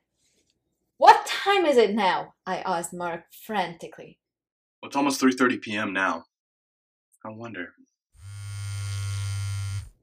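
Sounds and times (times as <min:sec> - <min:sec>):
speech: 0:01.0 - 0:04.2, 0:04.8 - 0:06.3, 0:07.2 - 0:07.9
phone buzzing: 0:08.2 - 0:10.0.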